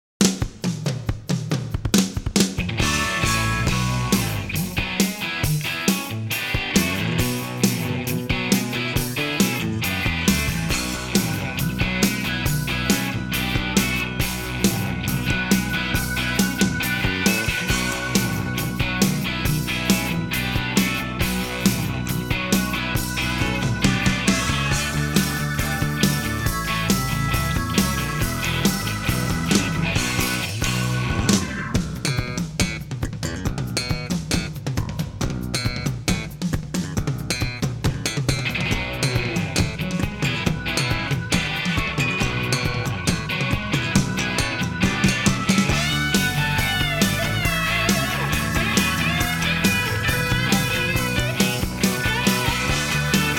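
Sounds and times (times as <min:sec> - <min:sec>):
band jamming without horns: 0:00.2 - 0:53.3.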